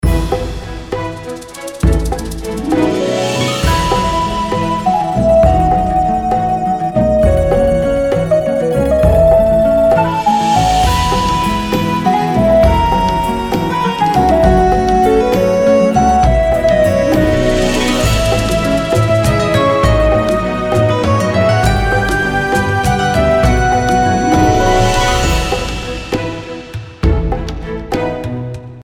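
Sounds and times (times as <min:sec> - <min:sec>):
background music: 0:00.0 - 0:28.8.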